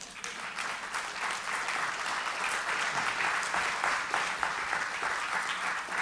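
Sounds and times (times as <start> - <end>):
audience clapping: 0.0 - 5.9.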